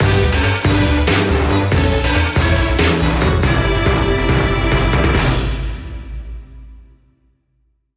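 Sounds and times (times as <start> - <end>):
jingle: 0.0 - 6.2.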